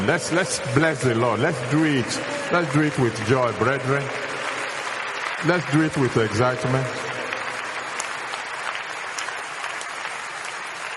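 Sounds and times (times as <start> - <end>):
speech: 0.0 - 4.4, 5.4 - 7.1
church congregation applauding: 0.0 - 10.9.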